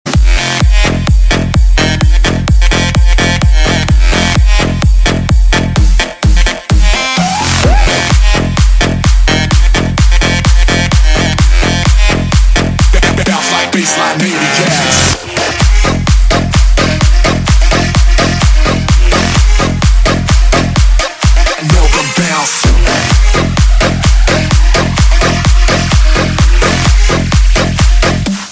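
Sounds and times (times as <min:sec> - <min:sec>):
bassline: 0:00.0 - 0:28.5.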